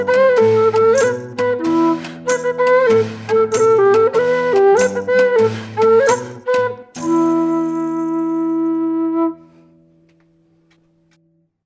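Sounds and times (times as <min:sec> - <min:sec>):
folk dance music: 0:00.0 - 0:09.0.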